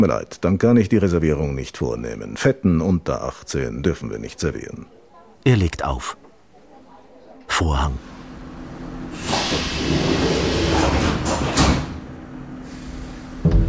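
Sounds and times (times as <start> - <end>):
speech: 0.0 - 6.2, 7.5 - 8.1, 9.1 - 10.4
U-Bahn subway train running, heard from inside a sparsely occupied car: 8.0 - 13.5.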